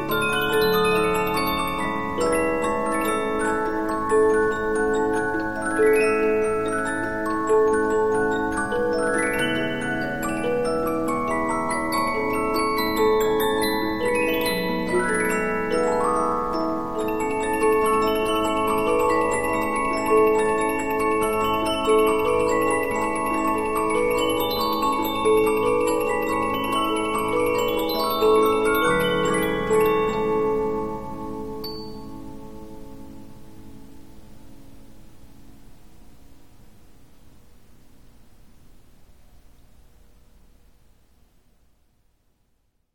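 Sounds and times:
Polyphon 15-inch disc music box playing: 0:00.0 - 0:33.1.

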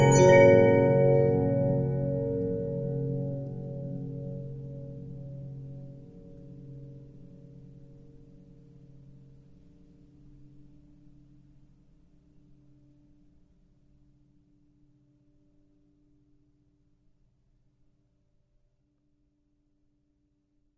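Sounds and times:
15-inch disc music box playing: 0:00.0 - 0:02.3.

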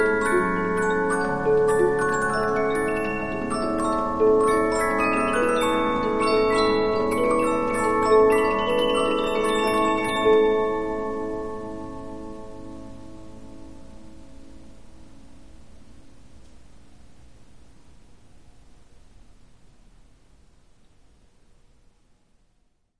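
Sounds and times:
Polyphon 15-inch disc music box playing: 0:00.0 - 0:12.0.

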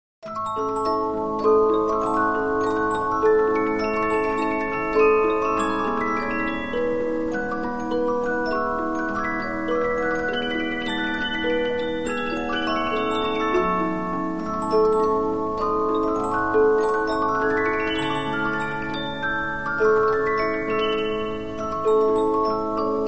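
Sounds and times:
Polyphon 15-inch disc music box playing: 0:00.3 - 0:23.0.

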